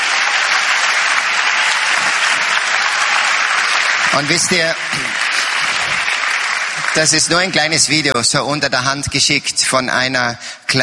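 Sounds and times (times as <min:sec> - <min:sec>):
audience applause: 0:00.0 - 0:08.1
speech: 0:04.2 - 0:05.3, 0:06.9 - 0:10.8.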